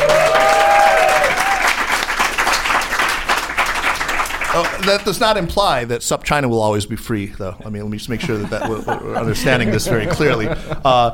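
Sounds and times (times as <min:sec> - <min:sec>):
audience applause: 0:00.0 - 0:05.3
speech: 0:04.8 - 0:11.1
laughter: 0:08.1 - 0:11.1.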